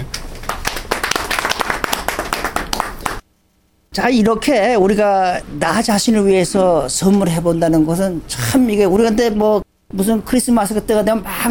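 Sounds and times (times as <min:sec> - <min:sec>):
crowd clapping: 0:00.0 - 0:03.2
speech: 0:04.0 - 0:11.4.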